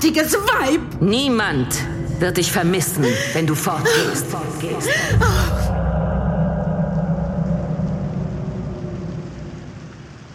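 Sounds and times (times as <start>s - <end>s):
speech: 0.0s - 5.8s
low rumbling: 0.8s - 10.3s
rain pattering against a window: 7.6s - 10.3s.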